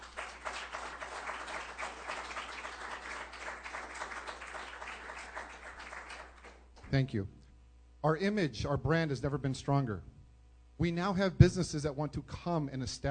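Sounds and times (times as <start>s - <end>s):
crowd round of applause: 0.0s - 6.7s
speech: 6.9s - 7.4s, 8.0s - 10.1s, 10.8s - 13.1s.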